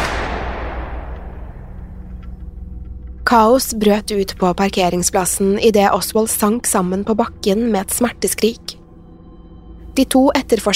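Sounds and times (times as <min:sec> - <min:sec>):
pistol gunshot with rumble: 0:00.0 - 0:02.0
speech: 0:03.3 - 0:08.7, 0:10.0 - 0:10.7.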